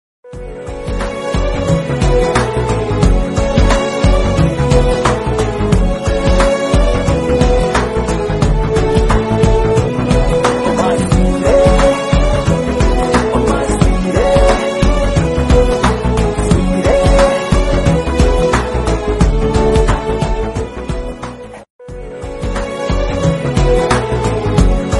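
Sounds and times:
Telugu flute background music: 0.2s - 24.9s.

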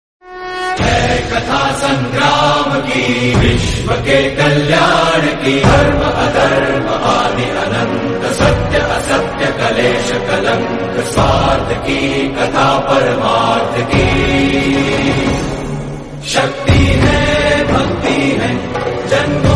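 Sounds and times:
war background music: 0.6s - 19.5s.

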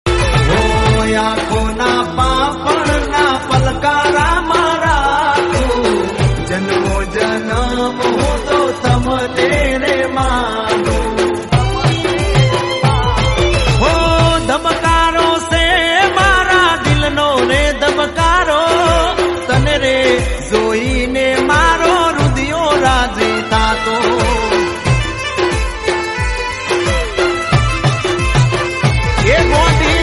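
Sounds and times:
Gujarati song: 0.1s - 30.0s.

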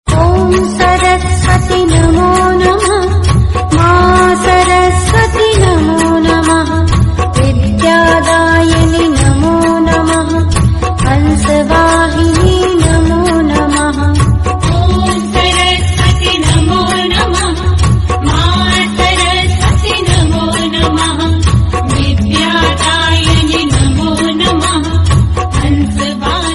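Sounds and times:
Hindi devotional song: 0.1s - 26.5s.

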